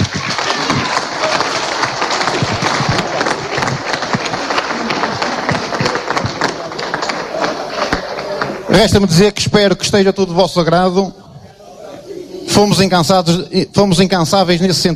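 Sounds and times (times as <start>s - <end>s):
large crowd applause: 0.0s - 9.2s
speech: 8.8s - 11.2s, 12.6s - 14.9s.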